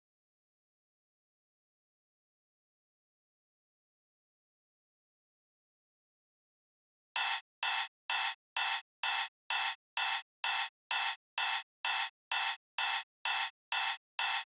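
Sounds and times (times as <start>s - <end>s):
ride cymbal drum loop at 128 BPM: 7.2s - 14.5s.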